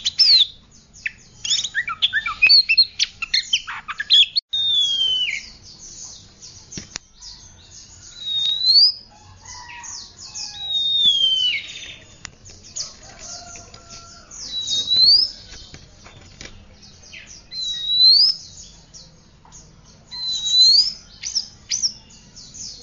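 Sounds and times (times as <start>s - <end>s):
Oriental magpie-robin whistles and chattering: 0.0s - 5.6s, 8.1s - 9.1s, 10.0s - 12.1s, 14.4s - 15.4s, 17.5s - 18.4s, 20.1s - 22.0s.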